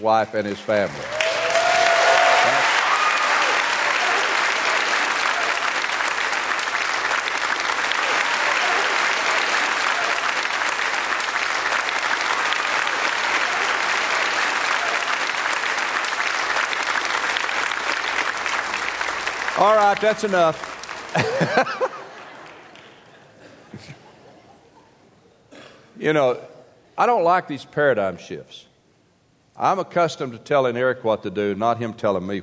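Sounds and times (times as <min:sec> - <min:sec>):
speech: 0:00.0 - 0:01.1, 0:19.6 - 0:21.9, 0:26.0 - 0:28.7, 0:29.6 - 0:32.4
audience applause: 0:00.5 - 0:23.2
laughter: 0:07.8 - 0:10.6, 0:21.0 - 0:25.1.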